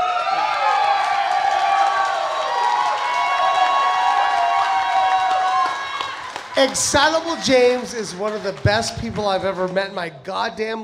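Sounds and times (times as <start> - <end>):
high-pitched whoops and shouts: 0.0 - 7.8
live audience cheering and clapping: 0.0 - 10.1
speech: 6.6 - 10.8.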